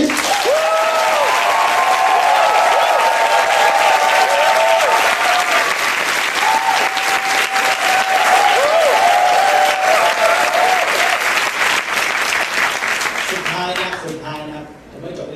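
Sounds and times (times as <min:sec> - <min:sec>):
crowd clapping: 0:00.0 - 0:14.5.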